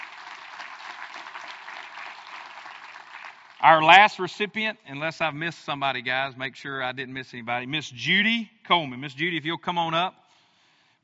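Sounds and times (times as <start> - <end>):
audience round of applause: 0.0 - 4.2
speech: 3.6 - 10.2.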